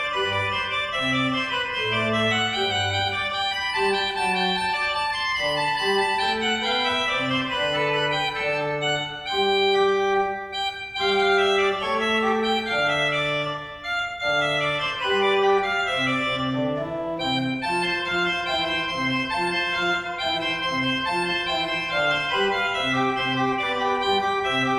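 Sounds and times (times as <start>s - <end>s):
church organ playing a cornet voluntary in Wapserveen: 0.0s - 24.7s.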